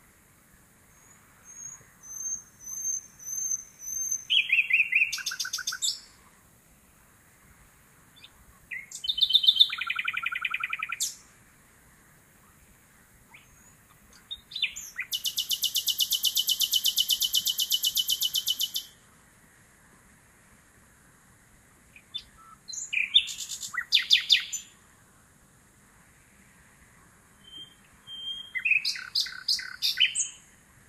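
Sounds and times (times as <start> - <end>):
common nightingale singing: 0.8 - 6.4, 8.1 - 11.4, 12.4 - 19.0, 21.9 - 24.8, 27.3 - 30.6.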